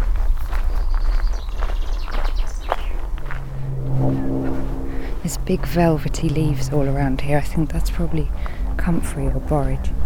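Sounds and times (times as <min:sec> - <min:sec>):
footsteps walking on gravel: 0:00.0 - 0:03.6
birds chirping: 0:00.2 - 0:08.6
low rumble: 0:02.5 - 0:10.0
speech: 0:05.3 - 0:10.0.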